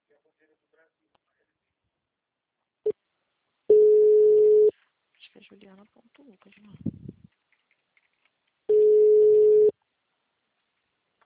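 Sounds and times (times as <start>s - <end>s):
phone line beep after a dropped call: 3.7s - 4.7s, 8.7s - 9.7s
speech: 5.6s - 7.0s.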